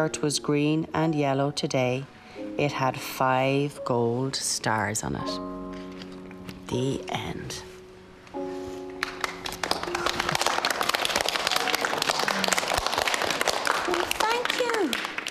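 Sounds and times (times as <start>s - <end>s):
speech: 0.0s - 5.6s, 6.7s - 7.7s
round of applause: 9.0s - 15.2s.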